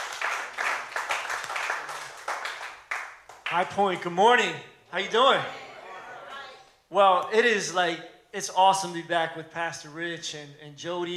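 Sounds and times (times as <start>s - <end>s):
church audience clapping to welcome a pastor: 0.0s - 3.8s
speech: 3.5s - 5.6s, 6.9s - 11.1s.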